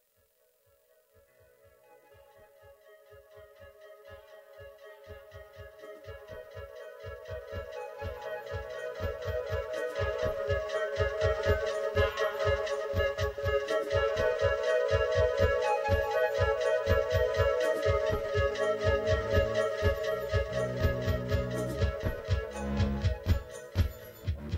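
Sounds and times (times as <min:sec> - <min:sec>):
flute interlude: 0:01.4 - 0:24.4.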